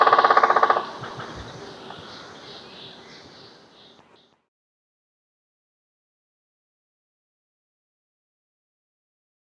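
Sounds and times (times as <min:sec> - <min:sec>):
bird calls: 0:00.0 - 0:04.4
woodpecker: 0:00.0 - 0:04.4.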